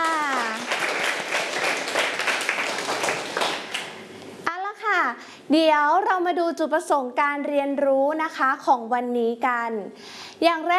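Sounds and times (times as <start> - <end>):
children clapping for themselves: 0.0 - 4.0
speech: 5.5 - 10.7.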